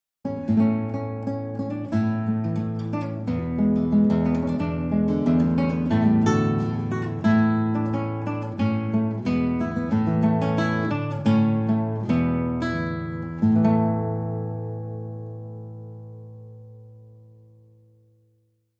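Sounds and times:
solo guitar: 0:00.2 - 0:18.7.

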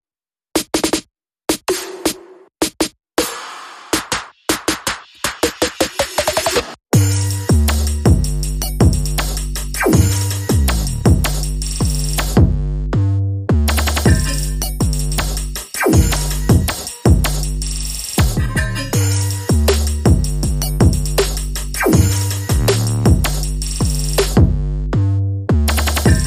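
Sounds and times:
drums: 0:00.6 - 0:12.6, 0:13.7 - 0:24.6, 0:25.7 - 0:26.2
bass: 0:06.9 - 0:26.2.

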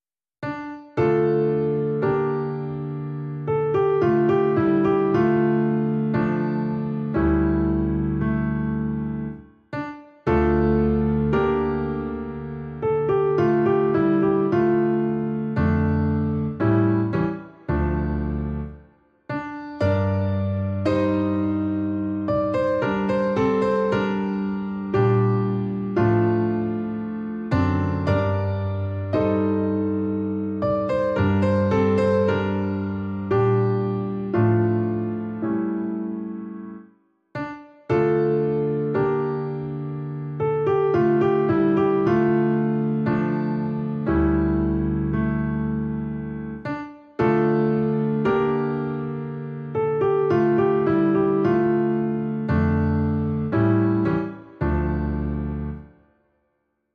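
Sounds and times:
solo piano: 0:00.4 - 0:56.2.

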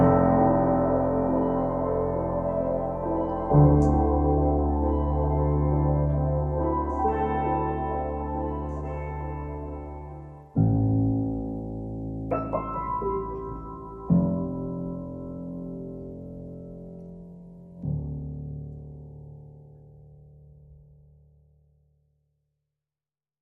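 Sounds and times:
pianos playing: 0:00.0 - 0:18.0.

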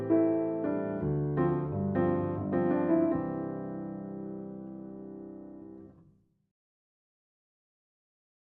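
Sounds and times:
solo piano: 0:00.0 - 0:06.2.

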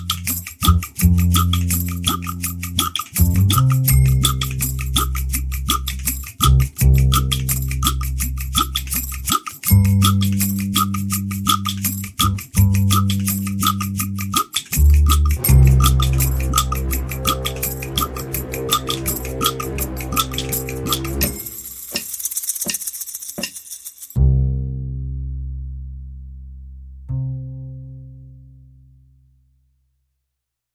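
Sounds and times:
drum and bass music mix: 0:00.0 - 0:22.2.

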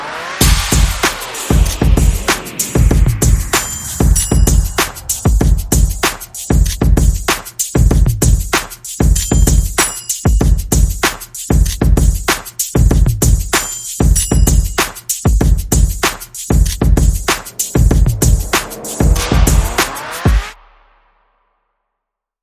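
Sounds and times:
sound effects: 0:00.0 - 0:06.9, 0:17.0 - 0:20.9
percussion: 0:00.0 - 0:20.7.

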